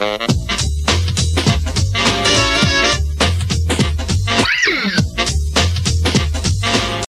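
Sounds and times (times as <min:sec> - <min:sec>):
jazzy music mix: 0:00.0 - 0:07.0.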